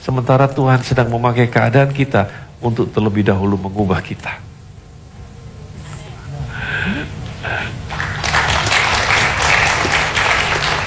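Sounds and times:
speech: 0.0s - 4.5s
audience applause: 7.4s - 10.8s.

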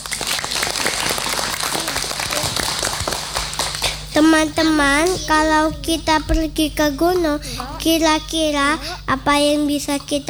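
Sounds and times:
applause: 0.0s - 4.2s
speech: 4.2s - 10.2s.

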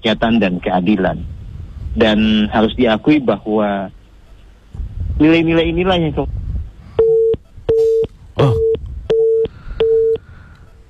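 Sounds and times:
speech: 0.0s - 1.4s, 2.0s - 4.0s, 5.2s - 6.4s, 8.4s - 8.7s
telephone busy tone after a phone call is cut off: 7.0s - 10.2s.

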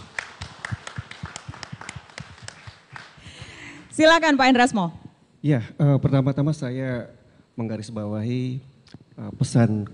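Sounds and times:
audience applause: 0.0s - 3.4s
speech: 4.0s - 9.9s.

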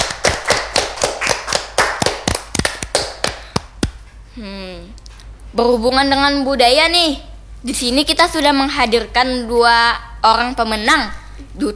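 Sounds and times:
audience clapping hands: 0.0s - 4.1s
speech: 4.4s - 11.7s.

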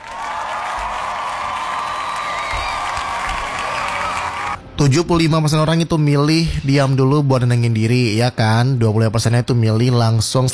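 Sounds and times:
applause: 0.0s - 4.6s
speech: 4.8s - 10.5s.

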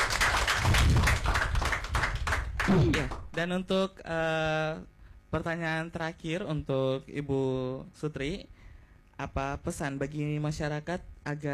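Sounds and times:
audience clapping after a speech at a family-welfare event: 0.0s - 3.6s
speech: 2.7s - 8.6s, 9.2s - 11.5s.

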